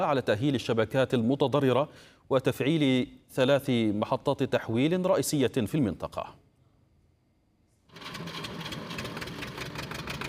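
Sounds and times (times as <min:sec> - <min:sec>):
speech: 0:00.0 - 0:06.4
diesel generator running to power a grain-sieving workshop: 0:08.0 - 0:10.2.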